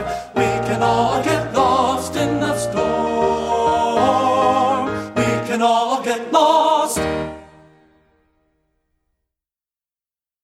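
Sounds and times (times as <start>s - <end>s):
men singing: 0.0s - 7.4s.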